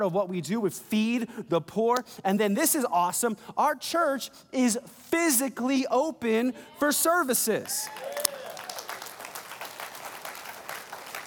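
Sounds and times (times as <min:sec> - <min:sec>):
speech: 0:00.0 - 0:08.3
live audience applause: 0:07.7 - 0:11.2.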